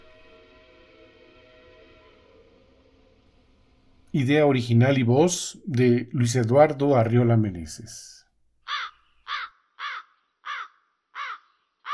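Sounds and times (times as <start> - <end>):
locomotive whistle as the train passes through Villa de Tezontepec: 0.0 - 3.2
speech: 4.1 - 8.2.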